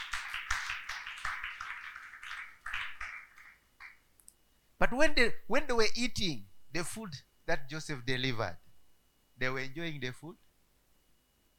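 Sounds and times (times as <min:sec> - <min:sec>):
audience clapping: 0:00.0 - 0:04.0
speech: 0:04.8 - 0:08.6, 0:09.4 - 0:10.4.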